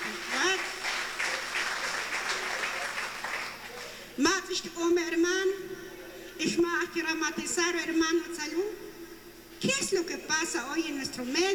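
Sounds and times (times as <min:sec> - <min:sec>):
audience applause: 0:00.0 - 0:04.2
speech: 0:04.2 - 0:08.9, 0:09.6 - 0:11.5.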